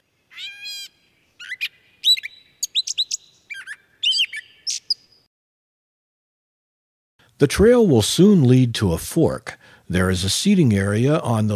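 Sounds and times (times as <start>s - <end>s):
gray catbird song with scratchy meow: 0.3s - 5.1s
speech: 7.4s - 11.5s.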